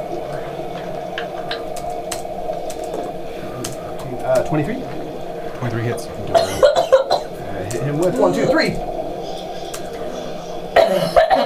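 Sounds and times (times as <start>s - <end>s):
speech: 4.3s - 5.0s, 5.6s - 6.7s, 7.8s - 8.9s
person coughing after choking on water: 6.3s - 7.3s, 10.8s - 11.4s.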